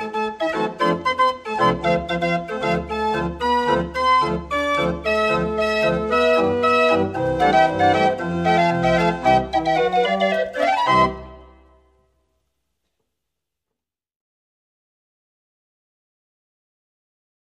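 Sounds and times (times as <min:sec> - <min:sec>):
street barrel organ playing: 0:00.0 - 0:11.8.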